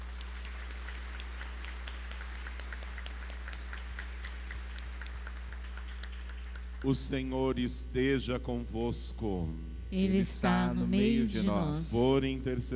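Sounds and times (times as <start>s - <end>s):
audience applause: 0.0s - 6.9s
low steady hum: 0.0s - 12.7s
speech: 6.8s - 12.7s.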